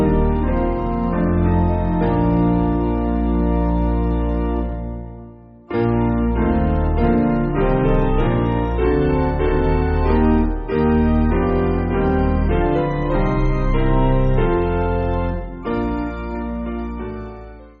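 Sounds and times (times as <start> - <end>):
piano: 0.0 - 17.7.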